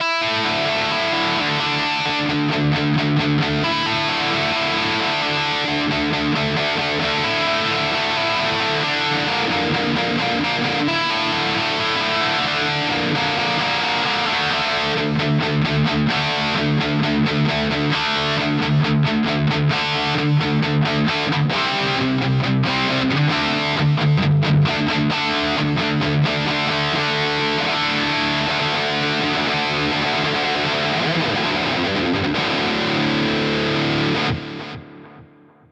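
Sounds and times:
electric guitar through Harley Benton DNAfx GiT Mark V amp: 0.0s - 35.7s.

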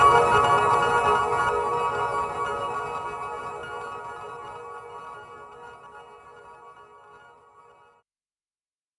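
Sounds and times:
piano: 0.0s - 6.6s.

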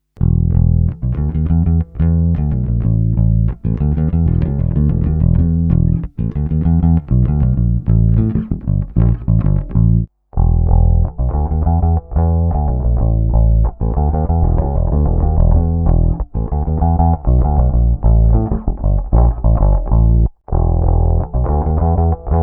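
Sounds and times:
passive P bass played with fingers: 0.0s - 22.4s.

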